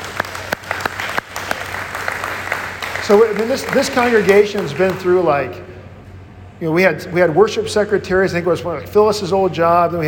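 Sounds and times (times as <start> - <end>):
round of applause: 0.0 - 5.3
speech: 3.1 - 5.7, 6.6 - 10.0.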